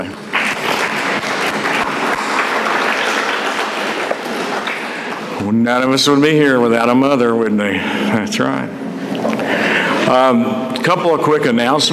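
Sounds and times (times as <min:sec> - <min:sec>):
audience applause: 0:00.2 - 0:05.4
speech: 0:05.5 - 0:08.8, 0:10.0 - 0:11.9.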